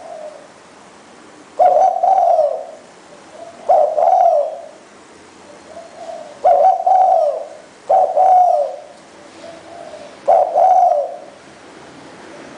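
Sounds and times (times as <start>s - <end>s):
spotted dove cooing: 0.0s - 0.6s, 1.6s - 4.8s, 5.4s - 11.4s, 12.3s - 12.5s.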